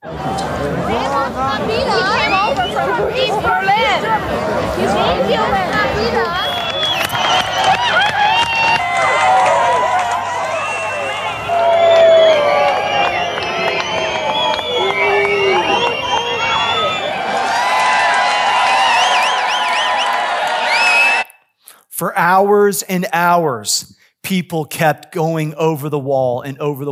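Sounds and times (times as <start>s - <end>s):
crowd celebrating at Berlin Wall: 0.0s - 21.4s
speech: 22.1s - 26.8s.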